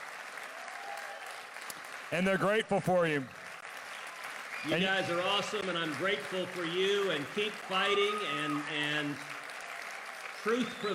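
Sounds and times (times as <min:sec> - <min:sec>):
audience clapping: 0:00.0 - 0:10.9
speech: 0:02.1 - 0:03.4, 0:04.6 - 0:09.3, 0:10.4 - 0:10.9.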